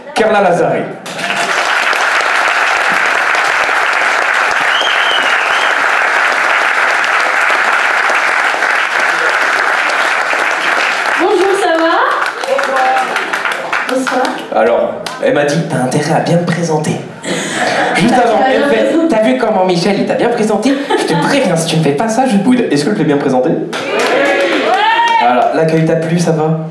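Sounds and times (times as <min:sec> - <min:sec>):
speech: 0:00.2 - 0:01.2, 0:14.1 - 0:17.1, 0:18.0 - 0:24.0, 0:25.2 - 0:26.6
audience applause: 0:01.0 - 0:14.5, 0:23.8 - 0:25.6
laughter: 0:17.2 - 0:19.0, 0:20.6 - 0:21.7.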